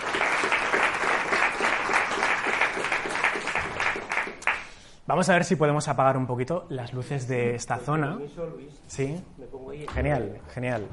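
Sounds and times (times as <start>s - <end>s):
audience applause: 0.0s - 4.8s
speech: 5.1s - 10.9s.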